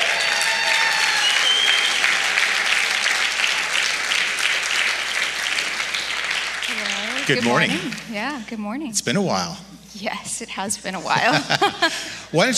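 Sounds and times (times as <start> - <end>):
church congregation applauding a speaker welcomed to the stage: 0.0 - 8.4
laughter: 6.7 - 8.4, 10.6 - 12.5
speech: 7.3 - 12.5.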